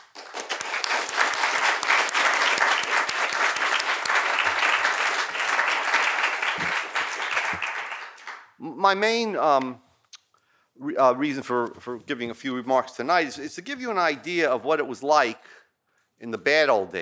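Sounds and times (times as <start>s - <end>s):
audience applause: 0.0s - 8.5s
speech: 8.8s - 9.8s, 10.9s - 15.6s, 16.2s - 16.9s.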